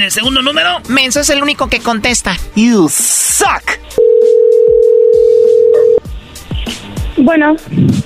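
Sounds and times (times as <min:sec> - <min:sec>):
speech: 0:00.0 - 0:04.4, 0:07.2 - 0:08.0
telephone dial tone after call cut off: 0:04.0 - 0:06.0.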